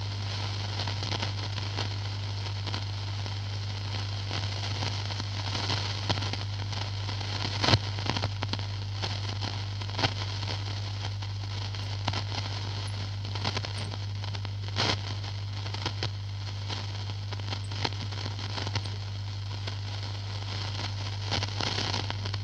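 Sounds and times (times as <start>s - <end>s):
Haiyan T241 old radio FM tuning noise hiss: 0.0s - 22.4s
constant low hum: 0.0s - 22.4s
crackles and pops: 0.0s - 22.4s.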